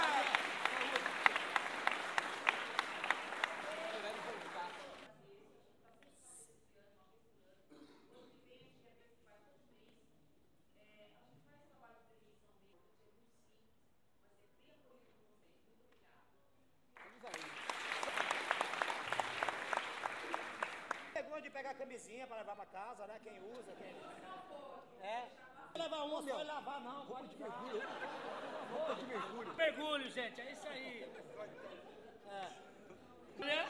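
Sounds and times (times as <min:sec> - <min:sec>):
crowd applause: 0:00.0 - 0:05.1, 0:17.0 - 0:21.2
laughter: 0:00.0 - 0:05.1, 0:27.2 - 0:33.6
speech: 0:21.6 - 0:32.7, 0:33.4 - 0:33.6.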